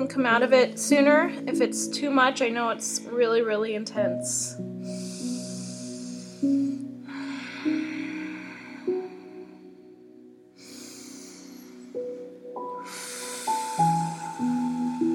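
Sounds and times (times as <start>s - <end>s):
speech: 0.1s - 5.1s
deep breathing during an intense yoga pose: 4.7s - 15.1s.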